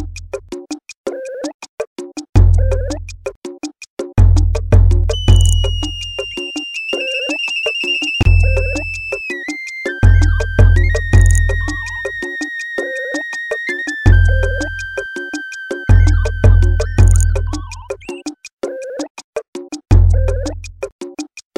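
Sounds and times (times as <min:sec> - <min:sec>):
phone ringtone: 0:01.1 - 0:01.6, 0:02.4 - 0:03.0, 0:05.1 - 0:19.1, 0:20.0 - 0:20.6.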